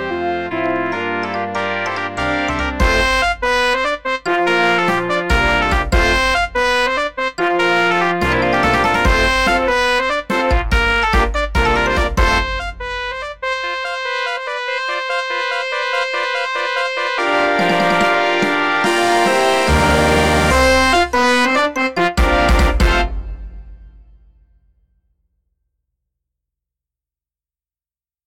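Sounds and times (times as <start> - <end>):
fanfare by brass ensemble: 0.0 - 24.2.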